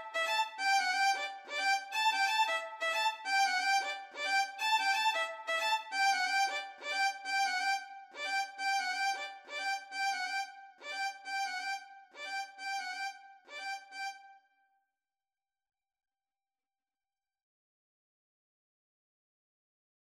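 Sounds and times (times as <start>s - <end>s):
violin duet: 0.0s - 14.2s.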